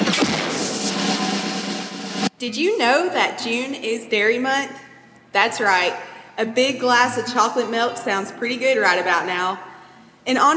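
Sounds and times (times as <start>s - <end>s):
drum roll: 0.0s - 2.3s
speech: 2.4s - 10.5s.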